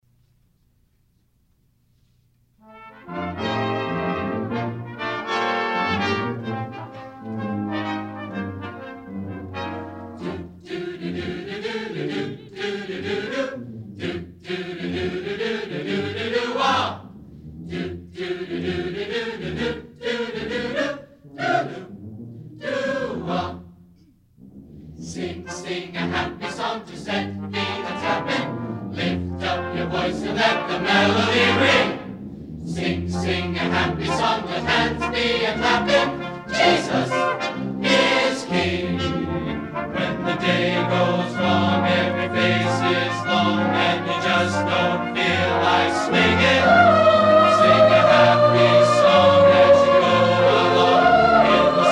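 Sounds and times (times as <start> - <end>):
chorus singing: 2.8 - 24.1, 24.9 - 51.9.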